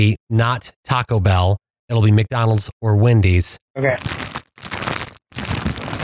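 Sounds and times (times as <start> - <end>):
speech: 0.0 - 4.2
fast-food burger paper wrapper crinkling: 4.0 - 6.0.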